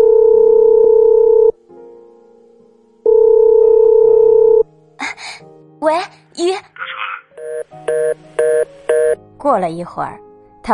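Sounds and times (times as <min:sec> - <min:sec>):
phone ringback tone: 0:00.0 - 0:01.6, 0:03.1 - 0:04.6, 0:07.4 - 0:09.2
speech: 0:09.5 - 0:10.7.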